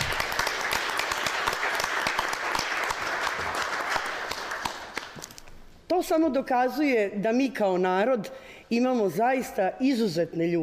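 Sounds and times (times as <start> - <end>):
audience applause at a book presentation: 0.0 - 5.2
speech: 6.1 - 10.6.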